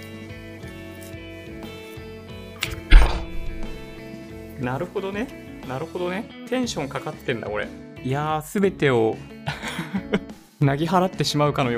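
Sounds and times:
spring-loaded mic boom arm clacking into place: 2.6 - 4.0
speech: 4.6 - 11.7.

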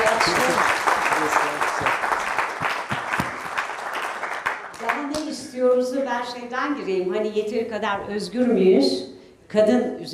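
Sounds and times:
audience applause: 0.0 - 5.3
speech: 6.2 - 10.1.

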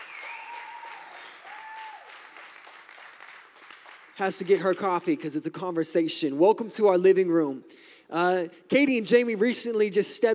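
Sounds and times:
church audience applauding: 0.0 - 4.9
speech: 4.2 - 10.3.

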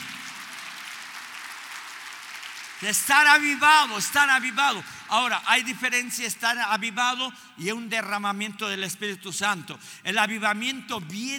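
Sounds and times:
audience applauding: 0.0 - 5.7
speech: 2.8 - 11.3.

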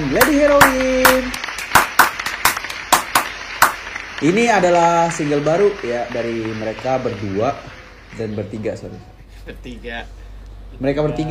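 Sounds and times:
audience clapping: 0.0 - 9.0
speech: 0.1 - 1.5, 4.2 - 11.2.

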